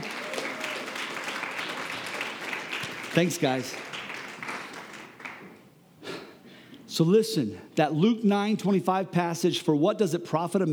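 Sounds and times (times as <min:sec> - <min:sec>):
audience applause: 0:00.0 - 0:05.6
speech: 0:03.2 - 0:03.9, 0:07.0 - 0:10.7.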